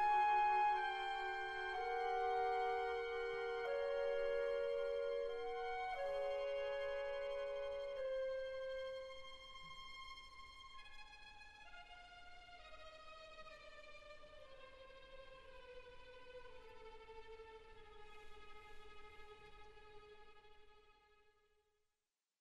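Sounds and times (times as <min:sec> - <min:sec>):
clarinet: 0:00.0 - 0:10.0.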